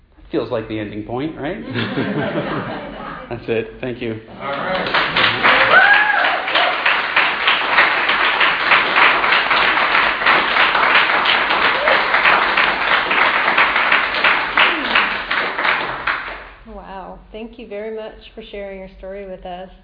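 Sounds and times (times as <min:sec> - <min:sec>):
speech: 0:00.3 - 0:05.3, 0:17.6 - 0:19.8
laughter: 0:01.6 - 0:03.4, 0:04.4 - 0:05.8
audience applause after a personal story on stage: 0:04.4 - 0:16.6.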